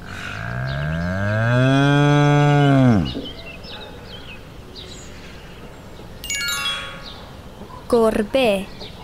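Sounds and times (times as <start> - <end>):
cow mooing: 0.3 - 3.2
speech: 7.9 - 8.8.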